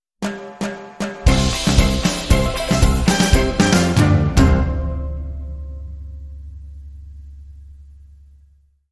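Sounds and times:
Caribbean music sting: 0.5 - 6.6.

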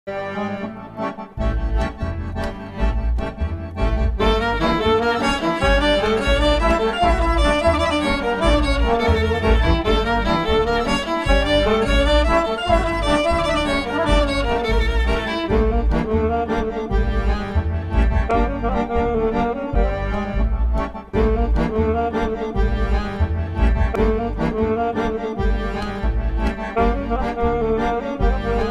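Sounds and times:
swing music: 0.1 - 28.6.

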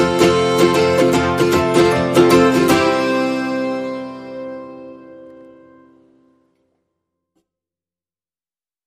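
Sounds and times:
ukulele: 0.0 - 6.0
guitar: 0.0 - 6.9.

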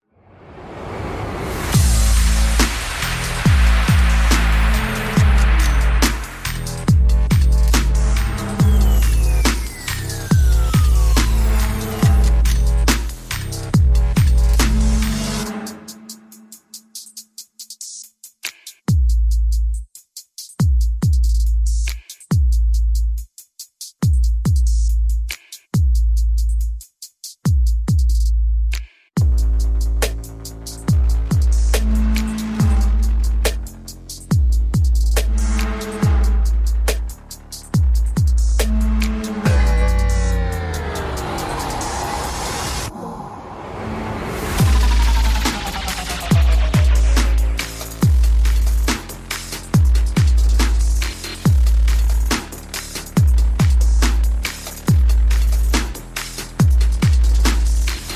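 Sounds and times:
sound effects: 0.2 - 13.5, 38.6 - 48.4
percussion: 1.4 - 42.9, 44.4 - 58.1
bass: 1.6 - 15.8, 18.9 - 19.9, 20.6 - 23.3, 24.0 - 26.8, 27.5 - 43.0, 44.4 - 58.1.

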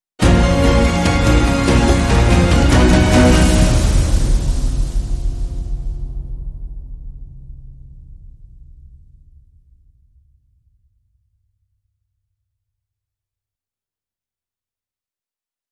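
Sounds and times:
music sting: 0.2 - 7.6.

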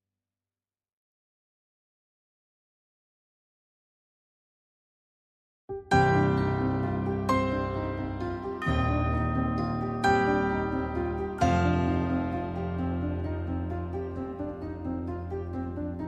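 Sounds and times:
piano: 5.7 - 16.0
bells: 6.1 - 12.8.

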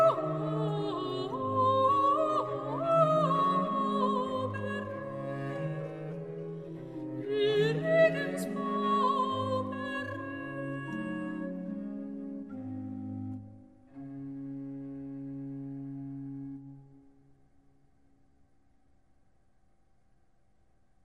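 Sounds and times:
soprano solo singing: 0.0 - 12.8.

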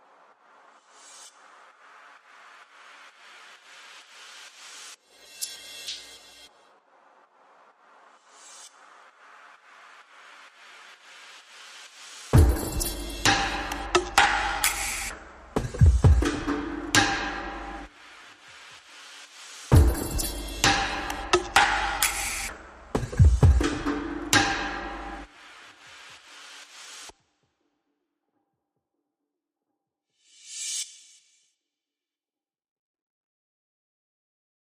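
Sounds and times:
drums: 0.0 - 27.2.

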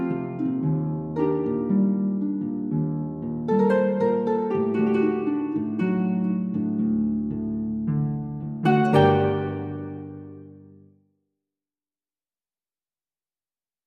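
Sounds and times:
solo harp: 0.0 - 10.9.

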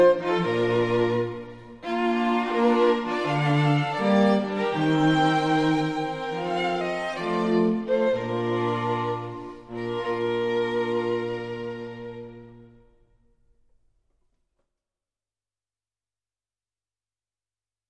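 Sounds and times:
string quartet: 0.0 - 13.2.

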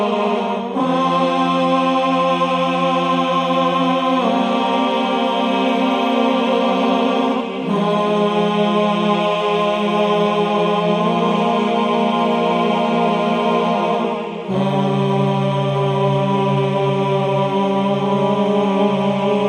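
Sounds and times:
male choir singing: 0.0 - 19.4.

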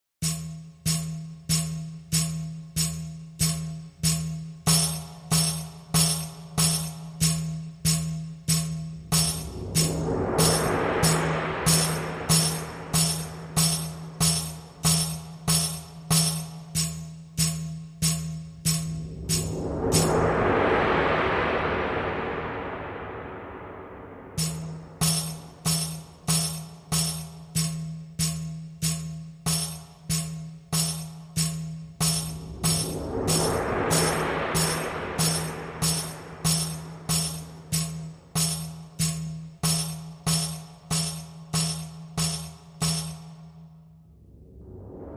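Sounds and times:
cymbals: 0.3 - 22.4, 24.4 - 43.6.

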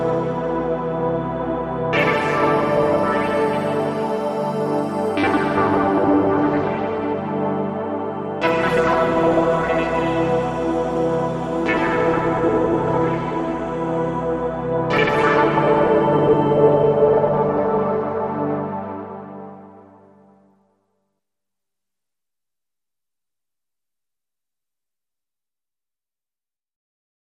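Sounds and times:
synth pads: 0.0 - 20.0.

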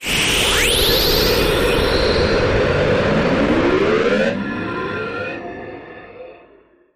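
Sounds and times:
space warp sound effect: 0.0 - 4.4.

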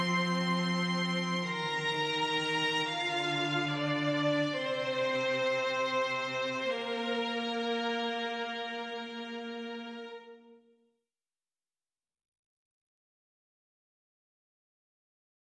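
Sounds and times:
string trio playing: 0.0 - 10.5.

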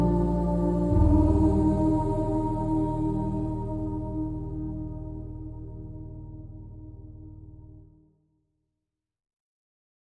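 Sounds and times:
choir: 0.0 - 6.3
piano: 0.0 - 8.1.

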